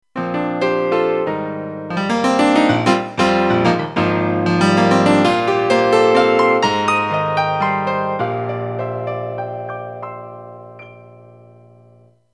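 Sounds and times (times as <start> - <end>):
piano: 0.0 - 12.3.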